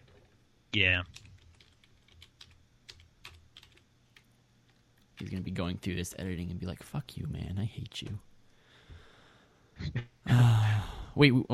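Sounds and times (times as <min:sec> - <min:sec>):
low steady hum: 0:00.0 - 0:11.5
speech: 0:00.7 - 0:01.2, 0:05.2 - 0:08.3, 0:09.8 - 0:10.6, 0:11.2 - 0:11.5
faint typing on a computer keyboard while a website address is entered: 0:01.1 - 0:05.5.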